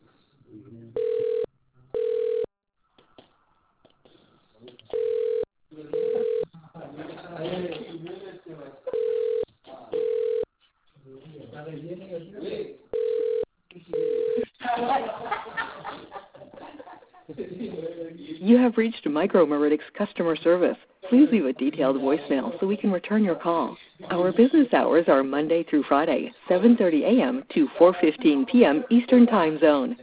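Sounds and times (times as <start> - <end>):
telephone ringback tone during a call transfer to customer service: 1.0 - 2.5, 4.9 - 5.4, 6.0 - 6.4, 8.9 - 9.4, 10.0 - 10.4, 12.9 - 14.4
laughter: 6.5 - 7.9, 14.4 - 17.9
speech: 18.8 - 30.0.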